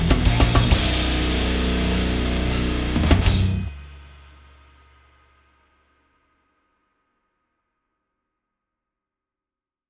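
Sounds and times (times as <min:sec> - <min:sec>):
high gain guitar amp: 0:00.0 - 0:04.0.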